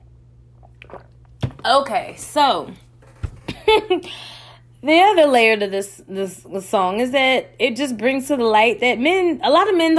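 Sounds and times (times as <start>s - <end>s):
person drinking water: 0.5s - 1.4s
speech: 1.6s - 2.8s, 3.7s - 9.9s.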